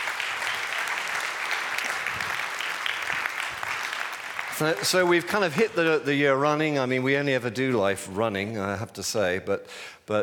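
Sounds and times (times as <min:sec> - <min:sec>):
audience clapping: 0:00.0 - 0:06.4
speech: 0:04.6 - 0:10.2.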